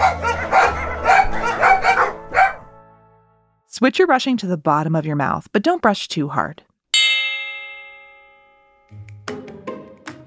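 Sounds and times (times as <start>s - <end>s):
dogs barking: 0.0s - 2.7s
speech: 3.8s - 6.7s.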